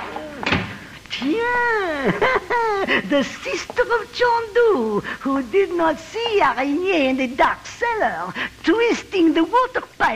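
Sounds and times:
door slamming shut: 0:00.0 - 0:00.8
speech: 0:01.1 - 0:10.1
laughter: 0:01.9 - 0:03.4.

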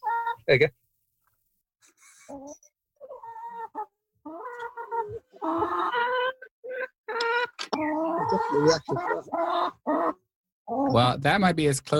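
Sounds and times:
chickens clucking: 0:00.0 - 0:00.5, 0:02.3 - 0:11.2
speech: 0:00.5 - 0:00.8, 0:08.3 - 0:09.8, 0:10.9 - 0:11.9.

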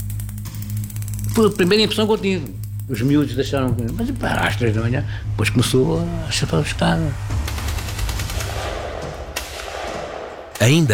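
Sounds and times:
speech: 0:01.4 - 0:07.4, 0:10.6 - 0:10.9
gunshots at night: 0:07.5 - 0:10.9.

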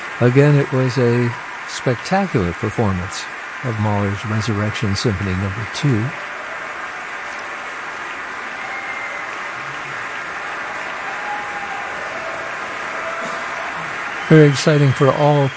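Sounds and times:
concert-hall audience applause after an orchestra performance of a symphony: 0:00.0 - 0:15.5
speech: 0:00.2 - 0:06.2, 0:14.3 - 0:15.5.

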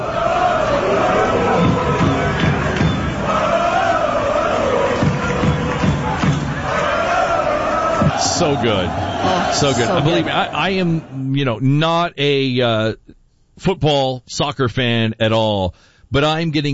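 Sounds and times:
large crowd of marching fans chanting and cheering: 0:00.0 - 0:11.3
speech: 0:08.5 - 0:16.7.

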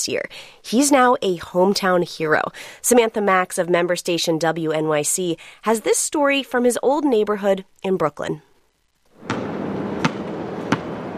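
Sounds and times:
speech: 0:00.0 - 0:08.5
outdoor noise: 0:00.0 - 0:11.1
basketball impacts on an outdoor court in Brooklyn: 0:09.2 - 0:11.1.

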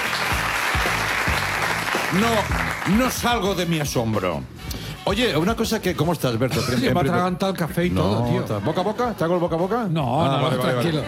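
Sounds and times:
crowd applauding: 0:00.0 - 0:03.7
speech: 0:02.1 - 0:11.0.

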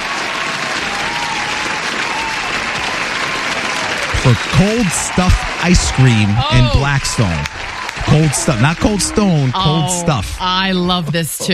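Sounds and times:
audience applause: 0:00.0 - 0:10.8
laughter: 0:04.1 - 0:11.5
speech: 0:04.2 - 0:07.5, 0:08.1 - 0:11.5.

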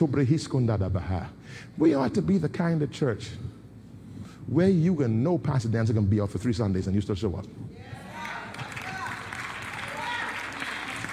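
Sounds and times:
speech: 0:00.0 - 0:03.6, 0:04.5 - 0:07.7
audience clapping: 0:08.2 - 0:11.1.

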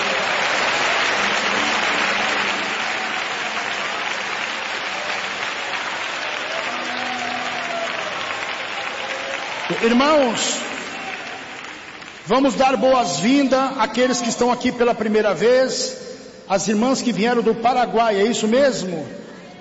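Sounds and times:
audience clapping hands in praise: 0:00.0 - 0:15.4
speech: 0:09.8 - 0:10.6, 0:12.3 - 0:19.3.

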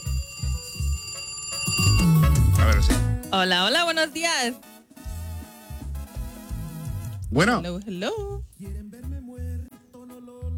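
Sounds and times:
telephone ringing with an incoming call during a phone-in: 0:00.0 - 0:04.8
speech: 0:02.7 - 0:04.7, 0:07.3 - 0:09.0.

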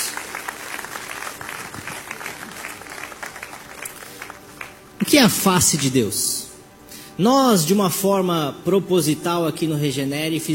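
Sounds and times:
crowd clapping: 0:00.0 - 0:05.9
speech: 0:05.0 - 0:06.4, 0:07.2 - 0:10.5.

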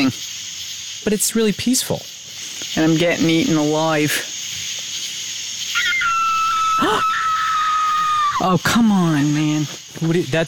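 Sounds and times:
speech: 0:00.0 - 0:00.3, 0:01.0 - 0:02.2, 0:02.8 - 0:04.3, 0:08.4 - 0:10.4
coyote or fox calling: 0:05.6 - 0:08.6.

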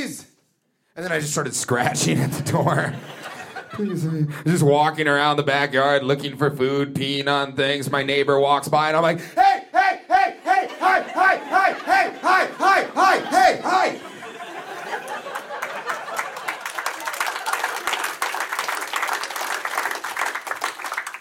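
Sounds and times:
speech: 0:01.0 - 0:09.6
laughter: 0:02.0 - 0:04.6, 0:09.8 - 0:18.4
crowd whooping in rhythmic bursts: 0:10.1 - 0:19.5
crowd applause with scattered shouts: 0:10.8 - 0:21.1.

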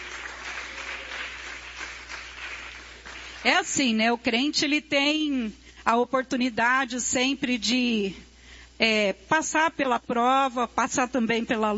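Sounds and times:
crowd applauding: 0:00.0 - 0:03.6
speech: 0:03.4 - 0:11.7.

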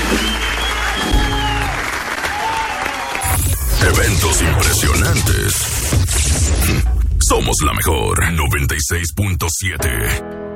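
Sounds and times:
audience applause: 0:00.0 - 0:03.3
speech: 0:04.4 - 0:10.4.

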